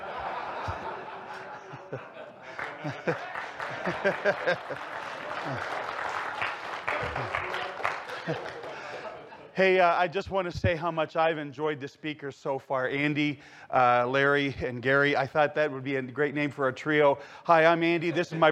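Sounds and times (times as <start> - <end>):
scattered laughter: 0.0 - 5.9, 6.9 - 9.5
crowd clapping: 0.6 - 9.3
speech: 1.9 - 2.2, 2.8 - 5.9, 7.0 - 7.6, 8.2 - 8.6, 9.6 - 18.5.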